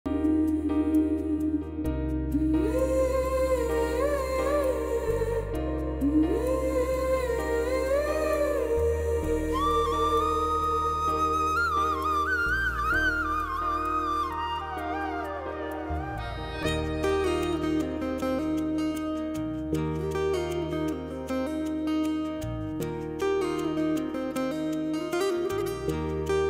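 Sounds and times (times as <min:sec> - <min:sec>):
background music ringtone: 0:00.1 - 0:26.4.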